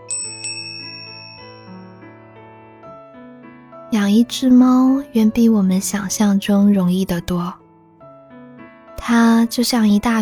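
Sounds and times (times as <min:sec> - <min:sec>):
bicycle bell ringing: 0:00.0 - 0:02.0
speech: 0:04.0 - 0:07.6, 0:09.1 - 0:10.2.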